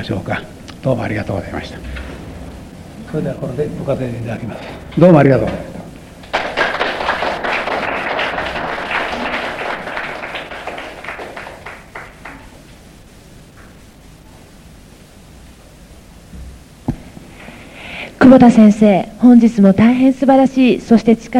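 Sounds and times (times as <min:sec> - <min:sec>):
speech: 0:00.0 - 0:02.1, 0:03.1 - 0:05.8, 0:18.3 - 0:21.3
audience applause: 0:06.2 - 0:12.6.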